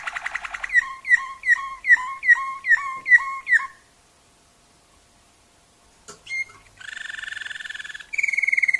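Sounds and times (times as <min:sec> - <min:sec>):
Waterslager canary singing bubbling dipping notes: 0:00.0 - 0:03.9, 0:06.2 - 0:08.7.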